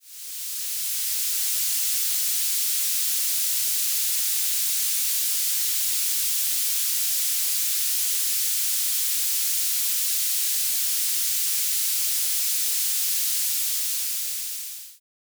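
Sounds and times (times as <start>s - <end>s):
frying: 0.0s - 15.0s.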